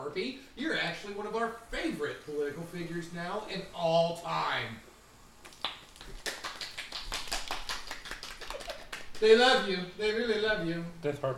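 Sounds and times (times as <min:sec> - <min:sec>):
speech: 0:00.2 - 0:04.9, 0:09.2 - 0:11.3
hand clapping: 0:05.4 - 0:09.3.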